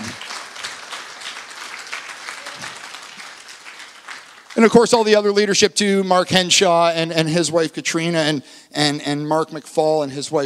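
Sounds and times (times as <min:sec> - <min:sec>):
audience applauding a pastor couple: 0:00.0 - 0:05.4
speech: 0:04.6 - 0:10.4.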